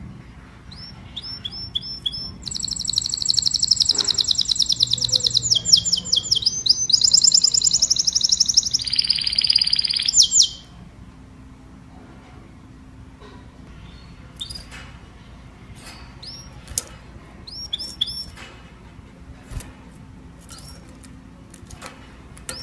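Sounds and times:
domestic canary singing: 0.7s - 10.8s, 13.8s - 14.7s, 15.9s - 16.8s, 17.4s - 18.4s.

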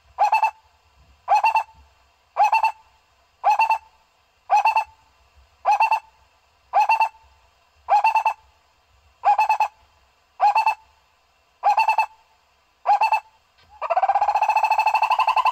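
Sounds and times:
owl hooting: 0.1s - 0.6s, 1.3s - 1.8s, 2.4s - 5.0s, 5.6s - 7.3s, 7.9s - 8.5s, 9.2s - 9.8s, 10.4s - 10.9s, 11.6s - 12.2s, 12.8s - 15.5s.

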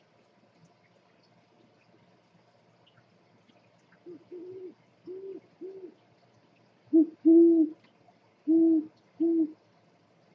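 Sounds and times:
scops owl hooting: 4.0s - 6.0s, 6.9s - 7.8s, 8.4s - 9.6s.

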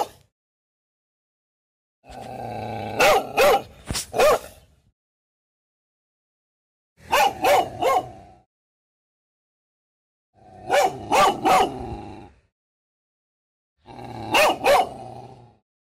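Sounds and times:
dog barking: 0.0s - 0.2s, 3.0s - 4.6s, 7.0s - 8.4s, 10.6s - 11.8s, 14.3s - 15.0s.

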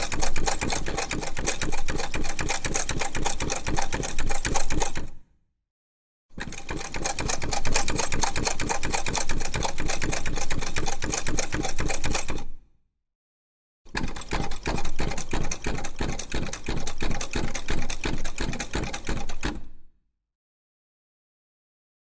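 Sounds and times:
old treadle sewing machine for clothes: 0.0s - 5.1s, 6.4s - 12.4s, 13.9s - 19.6s.

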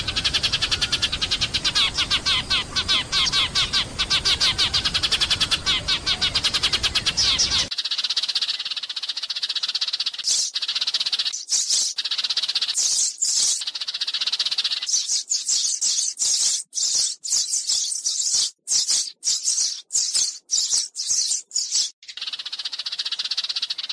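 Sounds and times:
Eurasian tree sparrow calling with sharp chips: 0.0s - 23.9s.

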